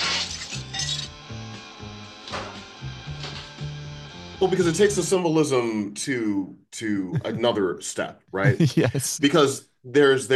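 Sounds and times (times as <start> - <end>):
mirror being smashed: 0.0 - 1.2
speech: 4.4 - 10.3
laughter: 7.0 - 7.7, 8.3 - 9.4.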